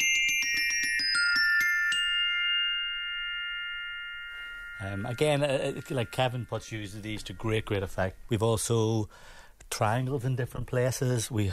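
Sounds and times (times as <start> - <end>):
glockenspiel metal bars ringing: 0.0 - 8.7
speech: 4.8 - 11.5.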